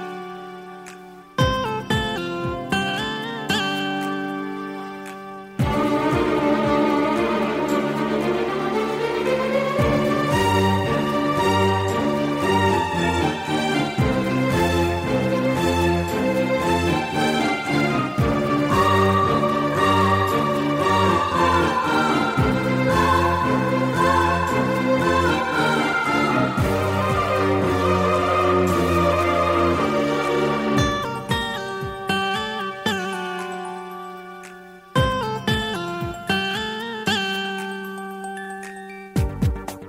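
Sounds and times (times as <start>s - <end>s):
Christian devotional karaoke music: 1.4s - 39.7s.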